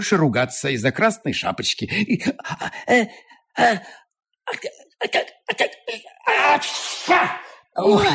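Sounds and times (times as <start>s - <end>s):
speech: 0.0s - 8.1s
loud exaggerated sneezes with gasping intakes: 6.3s - 8.1s.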